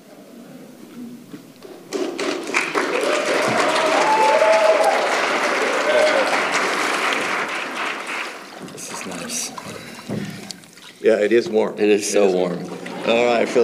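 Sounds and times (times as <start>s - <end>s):
audience clapping: 1.6s - 10.6s
speech: 11.1s - 13.6s.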